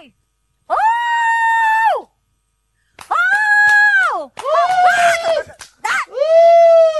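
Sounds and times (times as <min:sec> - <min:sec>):
woman hooting loudly to call someone: 0:00.7 - 0:02.1, 0:03.1 - 0:06.9.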